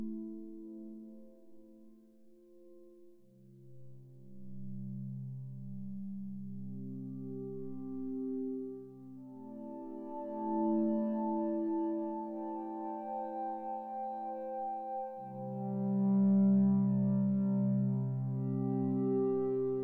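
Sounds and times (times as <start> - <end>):
woodwind pad ambience: 7.0 - 19.8.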